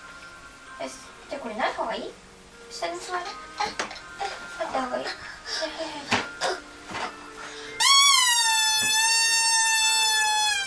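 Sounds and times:
speech: 0.8s - 6.2s
chair squeaking: 6.2s - 7.2s, 7.8s - 10.6s.

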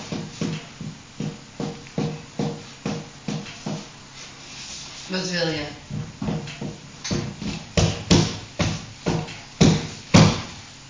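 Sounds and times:
fist pounding on a door: 0.1s - 3.8s, 5.9s - 10.6s
speech: 5.1s - 5.8s.

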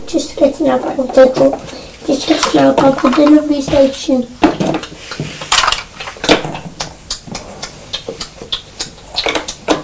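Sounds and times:
speech: 0.1s - 4.8s
child imitating car indicator tick-tock with tongue clicks: 7.1s - 9.7s.

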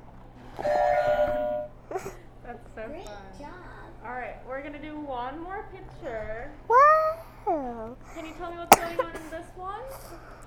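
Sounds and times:
game buzzer tone: 0.6s - 1.8s
speech: 4.6s - 6.7s, 7.8s - 10.4s.

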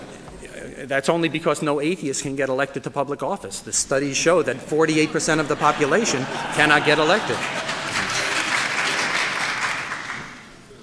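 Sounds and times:
speech: 0.7s - 7.6s
laughter: 4.4s - 10.3s
courtroom audience clapping: 5.7s - 10.6s.

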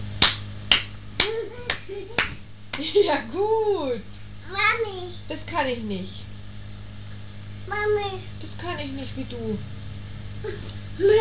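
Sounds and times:
hand claps: 0.2s - 3.0s
speech: 2.0s - 6.2s, 7.7s - 9.8s, 10.4s - 11.1s.

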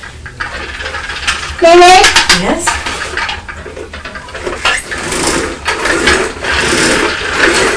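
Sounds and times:
toy falling off a table and clattering: 0.0s - 6.2s
rattling and scraping: 0.0s - 7.7s
speech: 1.6s - 2.8s.

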